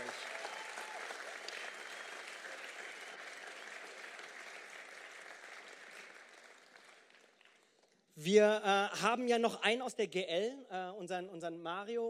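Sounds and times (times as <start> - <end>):
audience applause: 0.0 - 7.8
speech: 8.2 - 12.0.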